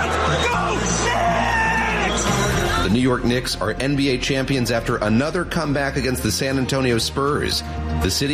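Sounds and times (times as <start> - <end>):
crowd cheering a championship win: 0.0 - 2.9
speech: 2.9 - 8.3.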